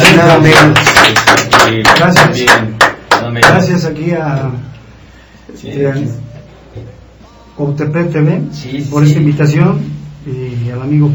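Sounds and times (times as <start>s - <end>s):
applause: 0.0s - 3.6s
speech: 0.2s - 4.8s, 5.5s - 6.9s, 7.6s - 11.1s.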